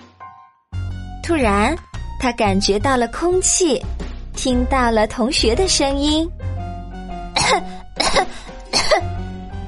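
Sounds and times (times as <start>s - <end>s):
speech: 1.3s - 6.4s, 7.5s - 8.3s
person coughing after choking on water: 7.4s - 9.2s.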